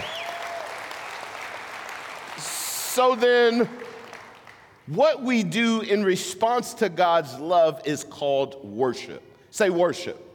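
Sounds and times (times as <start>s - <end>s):
audience applauding: 0.0s - 4.8s
speech: 2.4s - 3.9s, 4.9s - 10.3s.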